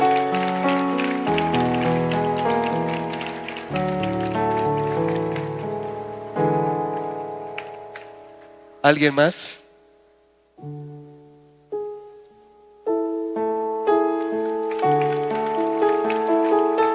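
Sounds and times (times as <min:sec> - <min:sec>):
audience clapping hands: 0:00.0 - 0:09.1, 0:14.2 - 0:16.9
sustained keyboard chords: 0:00.0 - 0:16.9
speech: 0:08.9 - 0:09.6.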